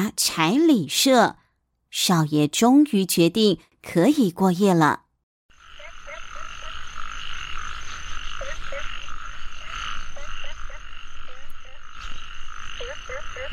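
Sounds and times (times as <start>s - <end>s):
speech: 0.0s - 5.0s
frogs croaking: 5.5s - 13.5s.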